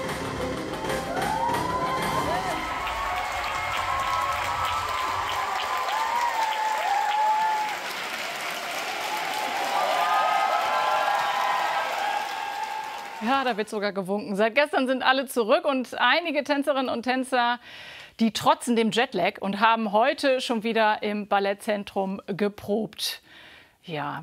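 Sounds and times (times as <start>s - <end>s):
theater audience applauding after ballet performance: 0.0s - 13.7s
cheers and whoops: 0.8s - 13.3s
speech: 13.4s - 24.2s.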